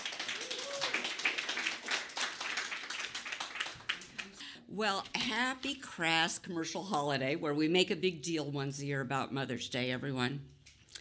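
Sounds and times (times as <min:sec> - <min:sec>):
audience clapping: 0:00.0 - 0:04.5
speech: 0:04.8 - 0:10.5.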